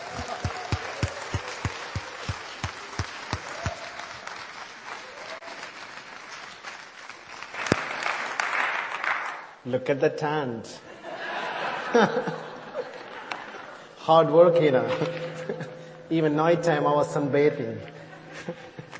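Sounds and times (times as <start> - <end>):
laughter: 0.0 - 4.0, 10.9 - 14.0, 14.8 - 15.9, 17.9 - 18.9
audience applause: 0.0 - 9.3
speech: 9.7 - 10.9, 11.9 - 12.5, 14.1 - 18.7.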